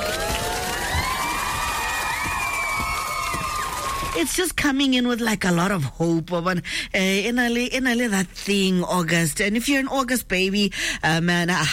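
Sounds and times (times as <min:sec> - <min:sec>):
applause and cheering sound effect: 0:00.0 - 0:04.4
speech: 0:04.2 - 0:11.7.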